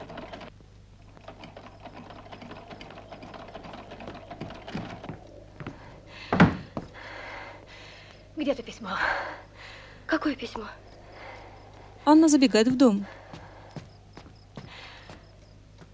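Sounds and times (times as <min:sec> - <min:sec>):
sewing machine stitching: 0:00.0 - 0:00.5, 0:01.1 - 0:05.1
speech: 0:08.4 - 0:10.8, 0:12.0 - 0:13.2.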